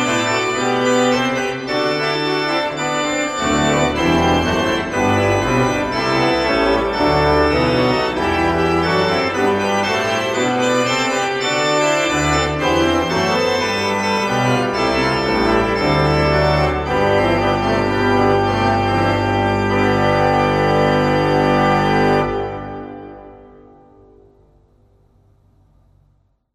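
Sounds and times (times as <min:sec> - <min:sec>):
Verschueren 20 II P pipe organ: 0:00.0 - 0:25.5.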